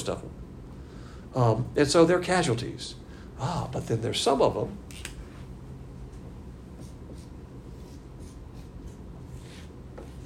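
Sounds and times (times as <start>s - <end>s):
speech: 0.0s - 0.4s, 1.3s - 5.1s
drawing on a board: 6.8s - 10.2s.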